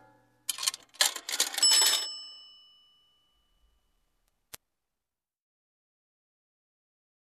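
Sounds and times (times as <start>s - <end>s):
telephone: 0.5s - 2.8s.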